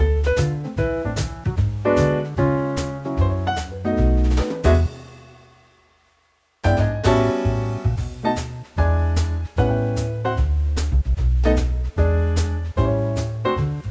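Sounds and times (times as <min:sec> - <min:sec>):
song backing track without guitar in D to Eb: 0:00.0 - 0:05.8, 0:06.6 - 0:13.8.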